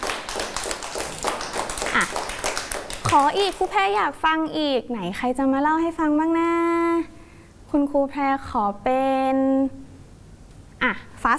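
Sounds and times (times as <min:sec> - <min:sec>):
children clapping hands: 0:00.0 - 0:03.9
speech: 0:02.0 - 0:02.2, 0:03.1 - 0:07.1, 0:07.7 - 0:09.8, 0:10.8 - 0:11.3.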